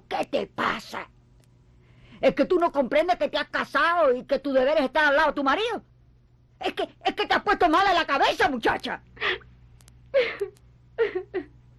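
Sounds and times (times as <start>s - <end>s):
speech: 0.1s - 1.1s, 2.2s - 5.9s, 6.6s - 9.4s
woman sobbing: 10.1s - 11.6s.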